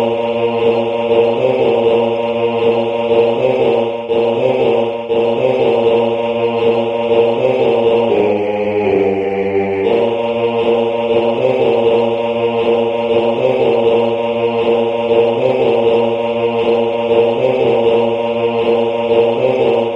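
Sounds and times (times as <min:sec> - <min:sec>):
baritone singing: 0:00.0 - 0:19.9.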